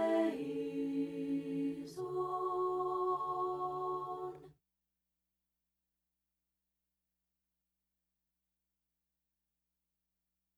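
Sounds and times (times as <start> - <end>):
alto voice chanting antiphonally: 0.0 - 4.5.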